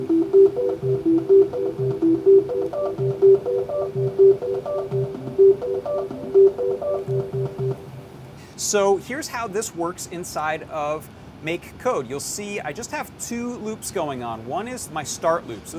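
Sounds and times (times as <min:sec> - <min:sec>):
electronic musical tones from button presses: 0:00.0 - 0:08.4
speech: 0:08.7 - 0:15.7.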